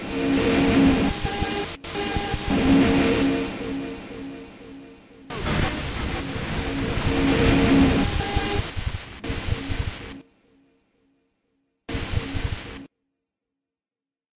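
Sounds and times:
ambient music: 0.0 - 11.2.

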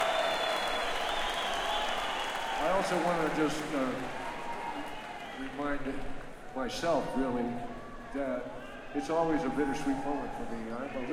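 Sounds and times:
audience applause: 0.0 - 6.0
speech: 2.8 - 4.2, 5.4 - 11.1.

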